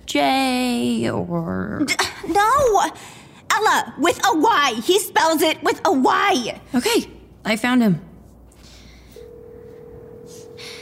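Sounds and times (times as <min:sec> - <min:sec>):
speech: 0:00.1 - 0:08.1
telephone ringing tone: 0:09.2 - 0:10.8.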